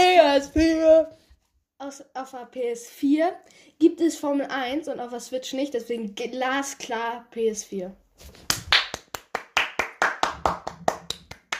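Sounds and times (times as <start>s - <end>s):
speech: 0.4s - 1.2s, 1.8s - 8.6s
hand clapping: 8.3s - 11.5s.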